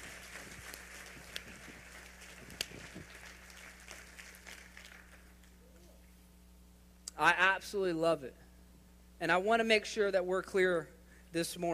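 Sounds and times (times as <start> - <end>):
audience applause: 0.0 - 5.6
speech: 7.2 - 8.4, 9.2 - 11.7.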